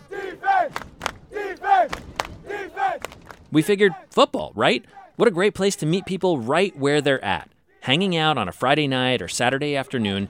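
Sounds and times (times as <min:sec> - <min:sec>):
crowd cheering at high school football game: 0:00.0 - 0:08.0
speech: 0:03.5 - 0:10.2.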